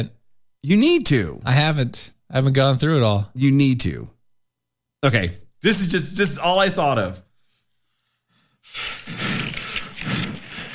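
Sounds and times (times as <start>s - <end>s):
speech: 0.0s - 4.1s, 5.0s - 7.3s
heavy breathing: 7.4s - 10.7s.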